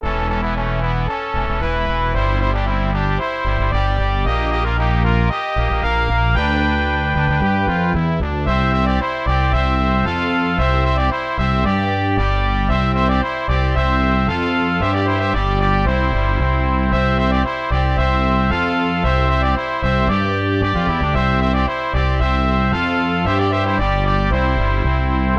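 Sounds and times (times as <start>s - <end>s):
fanfare: 0.0s - 25.3s.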